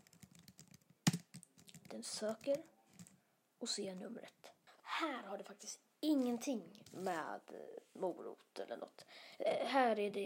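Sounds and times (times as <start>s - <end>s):
typing on a computer keyboard: 0.0s - 3.1s
speech: 1.9s - 2.8s, 3.6s - 4.4s, 5.0s - 10.2s.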